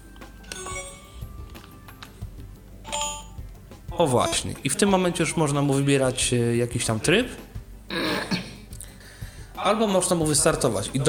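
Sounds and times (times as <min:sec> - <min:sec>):
robot vacuum power-on and ready chimes: 0:00.4 - 0:01.4, 0:02.9 - 0:03.4
speech: 0:04.0 - 0:07.5, 0:09.7 - 0:11.0.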